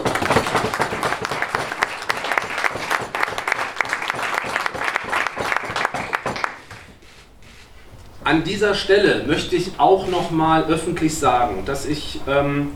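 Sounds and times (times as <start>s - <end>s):
applause: 0.0s - 6.8s
speech: 8.3s - 12.7s.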